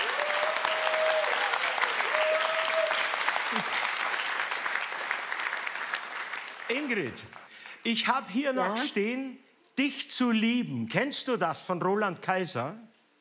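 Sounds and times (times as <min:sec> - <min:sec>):
audience applause: 0:00.0 - 0:07.5
speech: 0:06.7 - 0:12.9.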